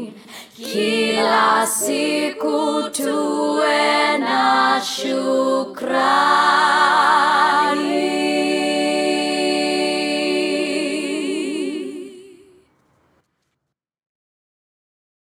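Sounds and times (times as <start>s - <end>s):
national anthem music: 0.7s - 12.1s.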